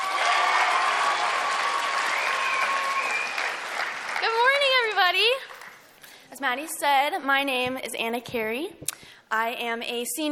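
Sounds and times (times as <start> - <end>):
audience applause: 0.0 - 5.8
speech: 6.4 - 10.2.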